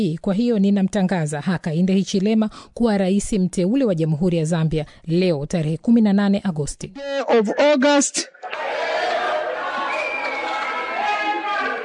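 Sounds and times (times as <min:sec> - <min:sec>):
speech: 0:00.0 - 0:08.9
crowd cheering and ululating at Zambia's presidential election result: 0:08.4 - 0:11.8.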